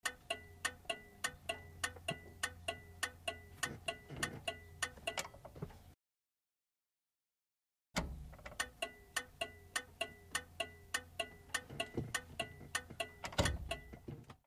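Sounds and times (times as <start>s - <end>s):
Chevrolet Corvair turn signal from interior: 0.0s - 5.3s, 8.0s - 14.2s.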